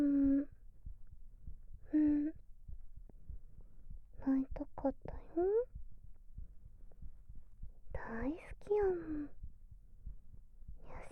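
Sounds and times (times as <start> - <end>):
heartbeat thumping: 0.0 - 11.1.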